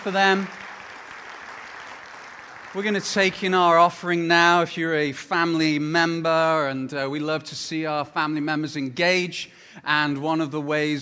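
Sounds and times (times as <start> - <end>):
speech: 0.0 - 0.6, 2.8 - 10.9
audience applauding: 0.0 - 3.8.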